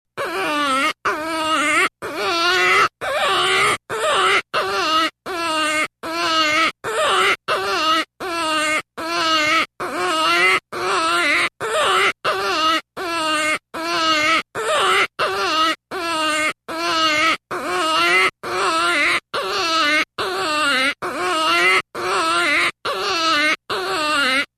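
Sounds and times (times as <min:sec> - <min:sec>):
jackrabbit wailing calls: 0:00.2 - 0:24.5.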